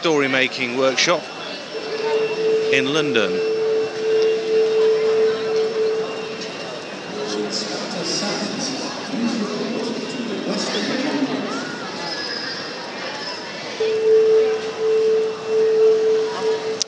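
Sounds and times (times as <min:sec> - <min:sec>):
speech: 0:00.0 - 0:01.4, 0:02.7 - 0:03.5
PA system test sound: 0:01.7 - 0:11.2, 0:13.8 - 0:16.8.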